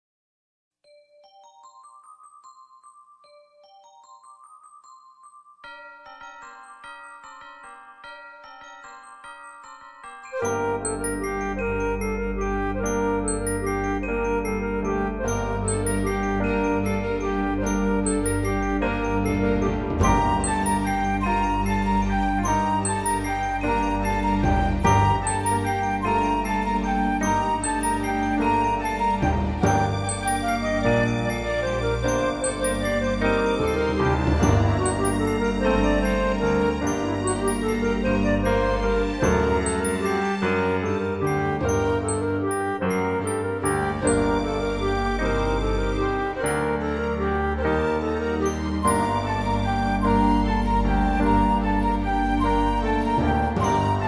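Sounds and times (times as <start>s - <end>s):
flute playing in G minor: 10.4s - 54.0s.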